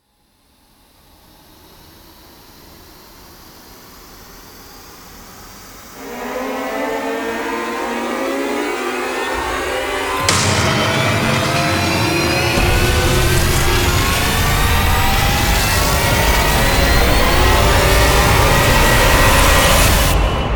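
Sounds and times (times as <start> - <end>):
rising sound: 6.0 - 20.4.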